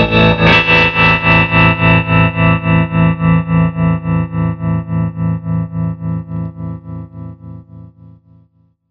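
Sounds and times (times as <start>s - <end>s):
clean baritone guitar with tremolo through an amplifier: 0.0s - 6.8s.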